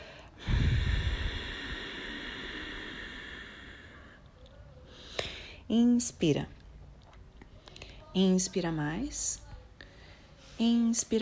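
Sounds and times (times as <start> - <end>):
long exhale during a guided breathing exercise: 0.0 - 4.2
speech: 5.7 - 6.6, 8.2 - 9.4, 10.6 - 11.1.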